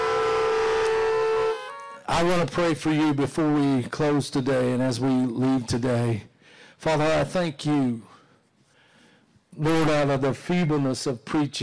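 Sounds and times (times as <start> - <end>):
car horn honking: 0.0 - 2.2
speech: 2.2 - 8.1, 9.6 - 11.6.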